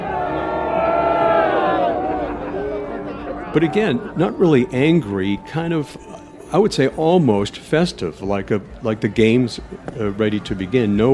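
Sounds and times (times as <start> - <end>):
rally crowd screaming and booing: 0.0 - 6.4
speech: 3.6 - 11.1.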